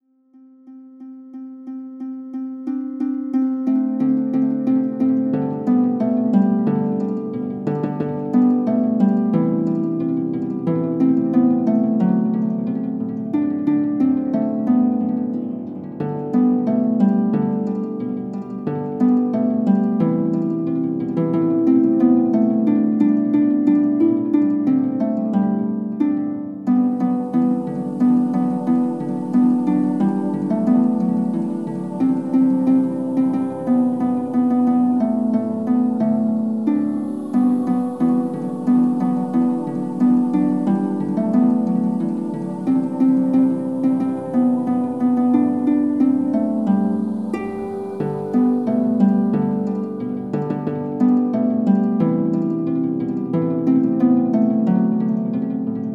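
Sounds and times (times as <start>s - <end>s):
instrumental Christmas song: 0.0s - 55.9s.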